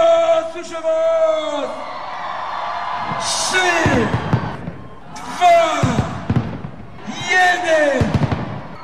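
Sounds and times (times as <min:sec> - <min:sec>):
speech: 0:00.6 - 0:01.0, 0:03.2 - 0:04.1
crowd cheering: 0:01.3 - 0:08.8
fireworks launching with rising whistle, pops and bangs: 0:03.0 - 0:08.8.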